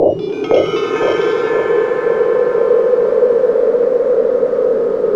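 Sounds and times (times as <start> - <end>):
synth atmosphere and effects: 0.0 - 5.0.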